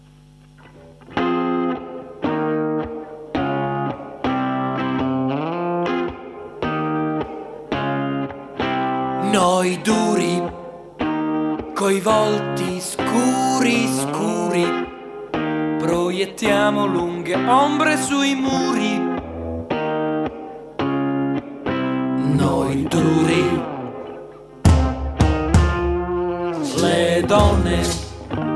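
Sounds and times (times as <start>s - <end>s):
bright effects-heavy electric guitar with distortion and chorus: 0.0s - 28.5s
speech: 9.3s - 10.5s, 11.8s - 14.8s, 16.2s - 19.1s, 22.9s - 23.7s, 27.3s - 28.0s
Italian band playing a cover song: 24.7s - 28.5s.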